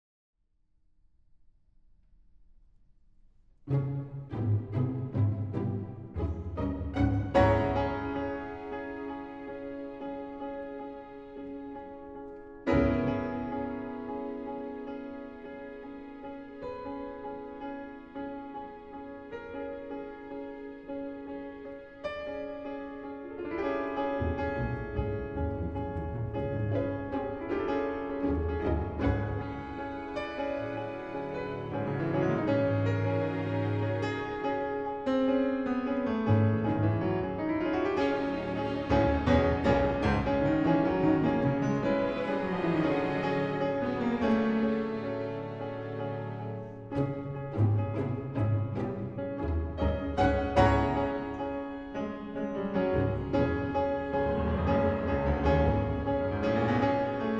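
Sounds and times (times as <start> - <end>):
piano concerto: 3.7 - 57.3.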